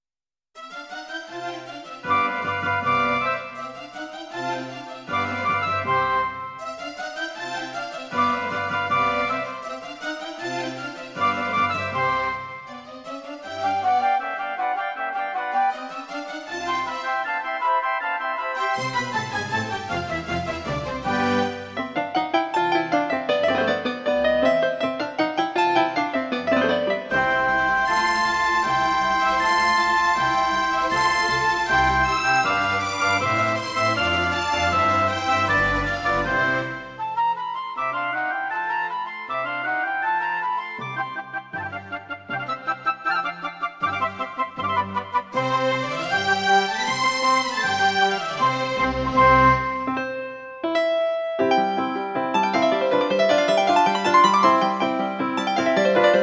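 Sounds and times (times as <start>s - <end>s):
Kawai GMega: 0.6s - 56.2s.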